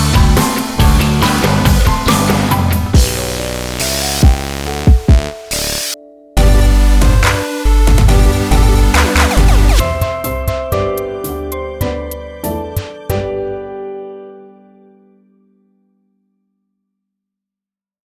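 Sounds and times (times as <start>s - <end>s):
chiptune music: 0.0s - 11.1s.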